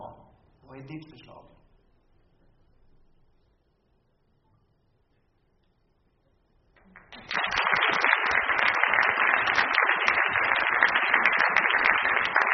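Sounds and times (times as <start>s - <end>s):
speech: 0.8s - 1.6s
audience applause: 6.8s - 12.5s.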